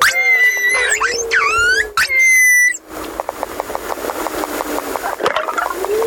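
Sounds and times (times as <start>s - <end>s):
pilot whale mother calling calf: 0.0s - 2.8s, 5.0s - 6.0s.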